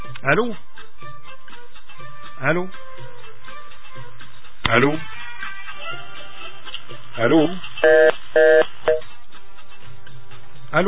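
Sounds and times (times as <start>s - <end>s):
speech: 0.2s - 0.7s, 2.4s - 2.9s, 4.7s - 5.1s, 7.2s - 8.7s
telephone tones on a radio call-in line: 7.8s - 9.1s.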